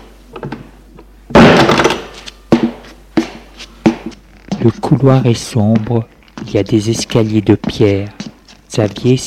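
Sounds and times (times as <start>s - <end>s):
door being closed: 1.3s - 2.2s
speech: 4.7s - 8.2s, 8.7s - 9.2s.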